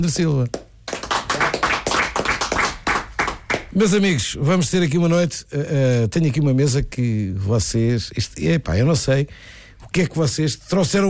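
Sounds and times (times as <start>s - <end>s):
speech: 0.0s - 0.6s, 3.8s - 11.0s
round of applause for a Portuguese guitar player at a fado venue: 0.5s - 3.8s.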